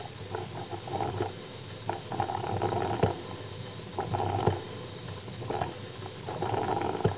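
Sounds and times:
coffee percolator: 0.0 - 7.1.

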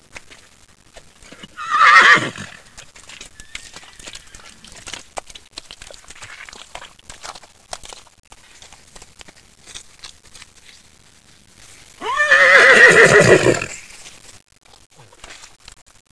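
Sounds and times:
horse: 0.0 - 10.9, 11.9 - 14.0.

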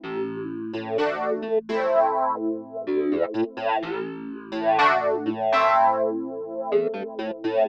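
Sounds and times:
synth house music at 125 BPM: 0.8 - 7.6.

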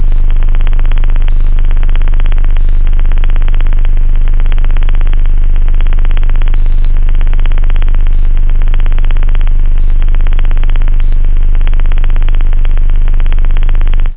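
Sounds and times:
sub bass: 0.0 - 14.1
synth: 0.0 - 14.1.

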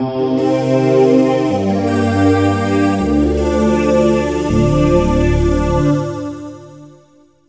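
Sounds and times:
ambient synth pad: 0.0 - 7.0.

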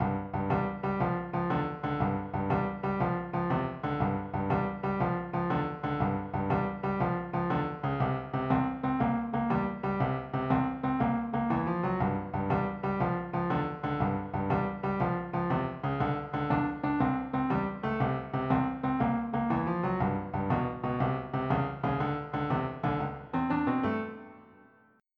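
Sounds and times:
blues music: 0.4 - 24.4.

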